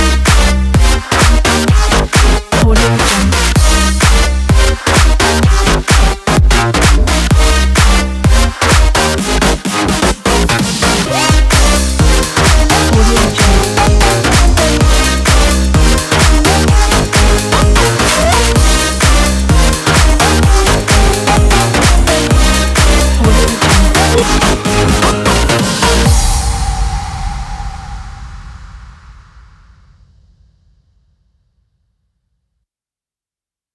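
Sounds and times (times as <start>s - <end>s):
electronic dance music: 0.0s - 26.6s.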